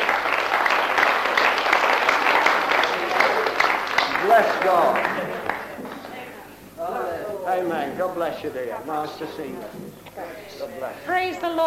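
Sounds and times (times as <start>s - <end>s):
crowd applauding: 0.0s - 6.2s
speech: 4.4s - 5.2s, 7.6s - 11.6s.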